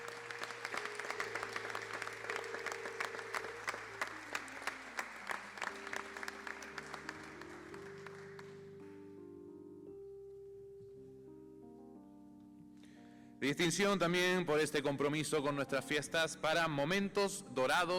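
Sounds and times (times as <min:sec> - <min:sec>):
audience applause: 0:00.0 - 0:08.9
speech: 0:13.4 - 0:17.9.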